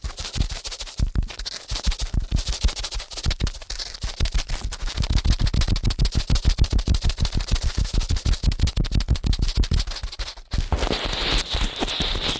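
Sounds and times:
fast ear cleaning sounds: 0:00.0 - 0:12.3.

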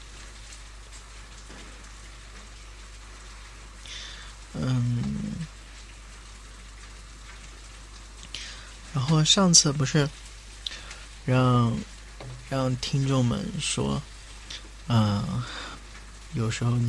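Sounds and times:
rain falling at night: 0:00.0 - 0:16.8
speech: 0:04.6 - 0:05.1, 0:09.0 - 0:10.2, 0:11.2 - 0:11.9, 0:12.5 - 0:14.1, 0:14.9 - 0:15.7, 0:16.3 - 0:16.8.

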